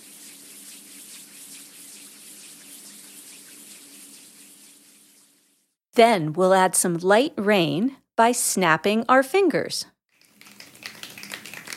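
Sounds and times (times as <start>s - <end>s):
hands rubbing together imitating wind: 0.0s - 5.6s, 10.2s - 11.7s
speech: 6.0s - 10.0s.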